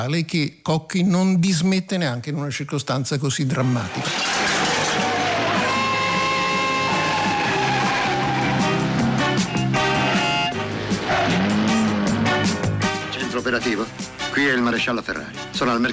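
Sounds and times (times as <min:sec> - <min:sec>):
speech: 0:00.0 - 0:04.5, 0:13.4 - 0:15.9
screeching tyres in a car chase, BMW pursued by a Fiat 124 Sport: 0:03.9 - 0:12.7
roaring engines of a BMW and a Fiat 124 Sport: 0:04.0 - 0:13.1.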